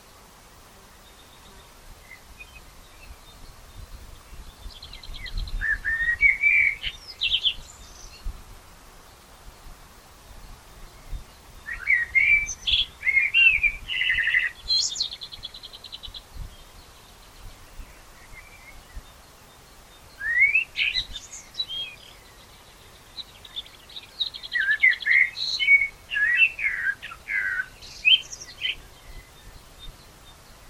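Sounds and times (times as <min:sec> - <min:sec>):
bird chirping: 0:00.8 - 0:08.4, 0:10.2 - 0:30.6
common blackbird singing: 0:04.5 - 0:08.2, 0:11.6 - 0:19.1, 0:20.0 - 0:30.4.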